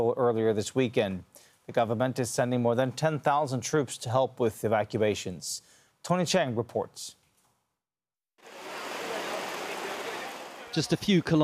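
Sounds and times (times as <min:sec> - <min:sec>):
speech: 0:00.0 - 0:07.2, 0:10.7 - 0:11.4
heavy rain downpour: 0:08.4 - 0:10.9.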